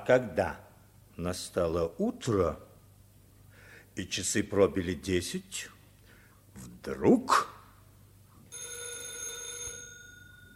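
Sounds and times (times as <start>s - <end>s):
speech: 0.0s - 0.6s, 1.2s - 2.7s, 4.0s - 5.8s, 6.6s - 7.5s
telephone ringing: 8.5s - 10.5s.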